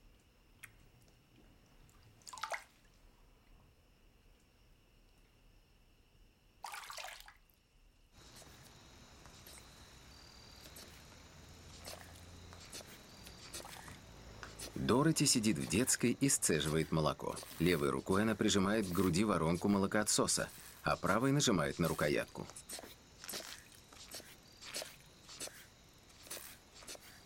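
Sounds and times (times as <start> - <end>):
water poured by hand over a baby: 2.2 - 2.9, 6.6 - 7.3, 10.6 - 27.1
speech: 14.9 - 22.8.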